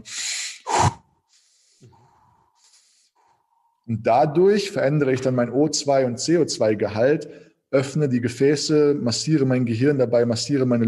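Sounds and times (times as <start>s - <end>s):
fast deep hyperventilation breathing of the Wim Hof technique: 0.0s - 3.9s
speech: 3.9s - 10.8s.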